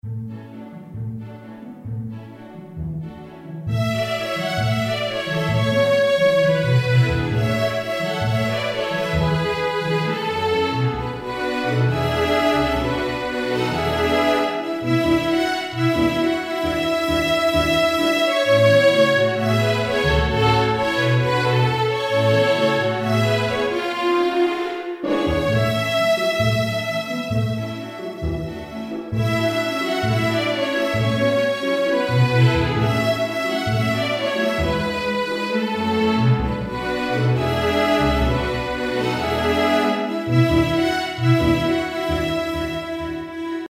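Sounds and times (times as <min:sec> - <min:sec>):
string orchestra: 0:00.0 - 0:43.6.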